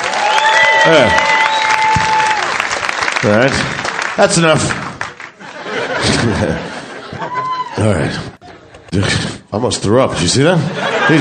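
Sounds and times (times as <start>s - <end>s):
room full of people clapping: 0.0s - 6.3s
speech: 0.8s - 1.2s, 3.2s - 4.8s, 6.0s - 6.7s, 7.8s - 8.3s, 8.9s - 11.1s
laughter: 5.3s - 9.0s, 10.5s - 11.1s.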